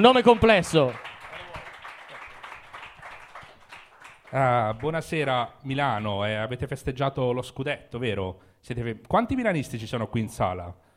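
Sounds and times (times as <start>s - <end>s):
speech: 0.0s - 1.0s, 4.3s - 10.8s
audience applause: 0.0s - 5.0s.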